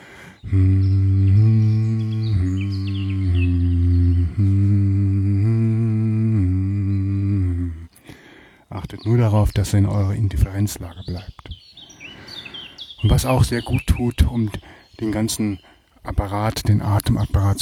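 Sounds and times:
voice humming in tones: 0.1s - 8.3s
speech: 0.5s - 0.9s, 9.4s - 11.4s, 13.0s - 17.6s.

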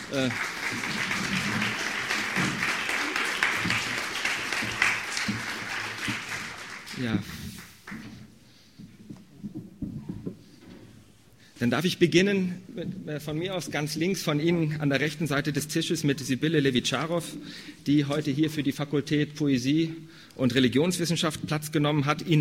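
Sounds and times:
audience applause: 0.0s - 8.1s
speech: 0.1s - 1.8s, 7.0s - 7.5s, 11.6s - 22.3s.

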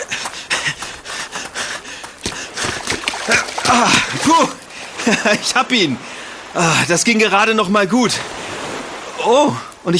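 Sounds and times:
ball splashing into water: 0.0s - 5.4s
speech: 3.7s - 8.4s, 9.2s - 9.9s.

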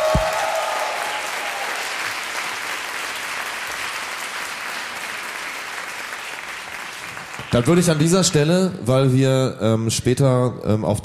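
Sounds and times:
audience applause: 0.0s - 8.4s
speech: 7.5s - 11.0s.

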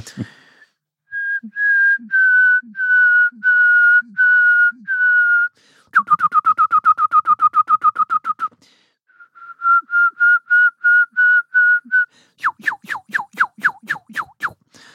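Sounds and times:
person whistling an imitation of a songbird's song: 1.1s - 14.6s.

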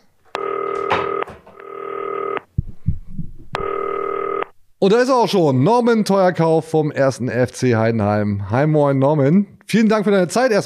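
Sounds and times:
telephone ringback tone: 0.4s - 2.5s, 3.6s - 4.5s
speech: 4.8s - 10.6s.

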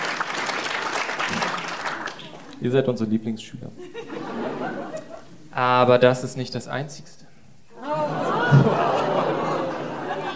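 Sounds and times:
audience applause: 0.0s - 2.5s, 7.8s - 10.3s
speech: 2.6s - 4.1s, 5.6s - 7.2s
laughter: 3.8s - 5.4s, 7.8s - 10.3s.

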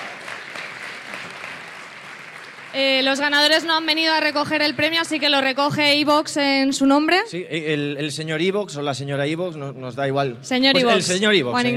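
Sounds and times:
crowd applauding: 0.0s - 5.3s
speech: 2.7s - 11.7s.

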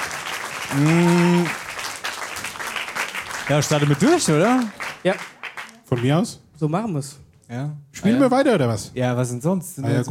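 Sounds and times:
audience applause at a game show: 0.0s - 6.3s
speech: 0.7s - 1.6s, 3.5s - 5.3s, 5.9s - 10.0s.

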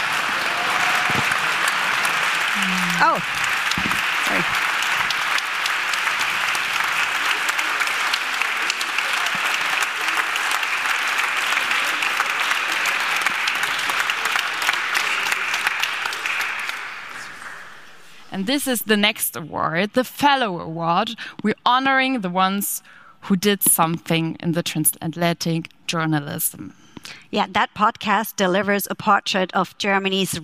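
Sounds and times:
audience applause: 0.0s - 18.2s
speech: 3.0s - 3.4s, 4.3s - 4.7s, 18.4s - 30.4s.

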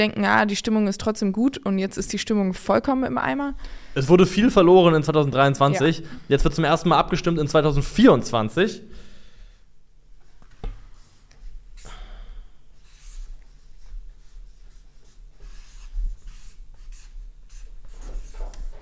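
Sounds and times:
speech: 0.0s - 9.0s
pen handwriting a word on paper: 14.2s - 18.8s.

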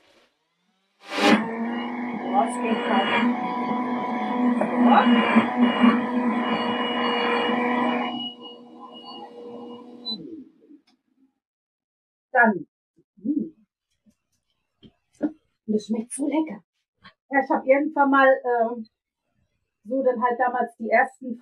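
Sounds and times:
blender motor running: 1.1s - 10.0s
speech: 2.4s - 4.2s, 4.8s - 6.6s, 15.8s - 16.7s, 17.3s - 19.0s, 19.9s - 21.4s.

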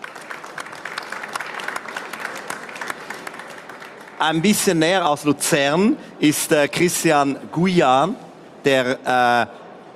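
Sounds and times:
audience applause: 0.0s - 4.4s
speech: 4.2s - 9.9s.

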